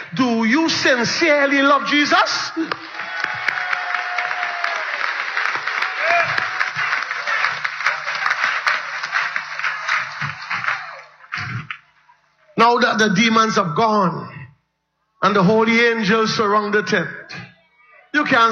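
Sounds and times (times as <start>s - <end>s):
speech: 0.1s - 3.0s, 12.6s - 14.4s, 15.2s - 17.2s, 18.2s - 18.4s
round of applause: 2.7s - 12.0s.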